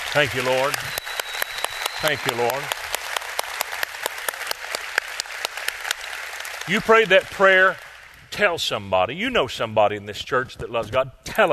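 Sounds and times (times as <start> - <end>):
audience clapping hands: 0.0 - 8.7
speech: 0.1 - 1.0, 2.0 - 2.8, 6.7 - 11.5.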